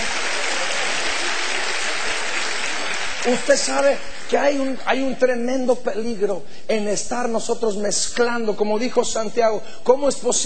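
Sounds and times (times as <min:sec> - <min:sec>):
audience applause: 0:00.0 - 0:04.6
speech: 0:03.2 - 0:10.4.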